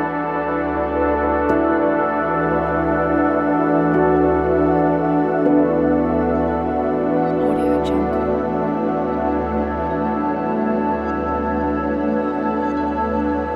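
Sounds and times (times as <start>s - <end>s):
meditative ambient soundscape: 0.0s - 13.5s.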